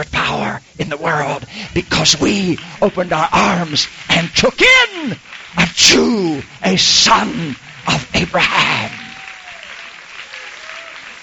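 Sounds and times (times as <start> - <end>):
speech: 0.0 - 9.0
audience applause: 0.0 - 11.2.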